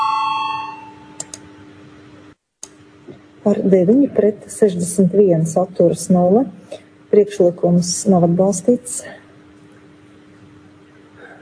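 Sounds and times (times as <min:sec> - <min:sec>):
parliament chamber voting bell ringing: 0:00.0 - 0:01.2
speech: 0:03.4 - 0:09.2.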